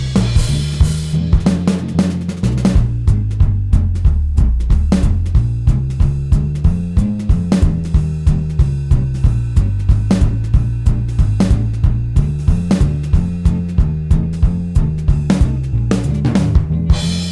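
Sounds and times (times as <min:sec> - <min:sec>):
swing backing track for guitar shredding: 0:00.0 - 0:17.2.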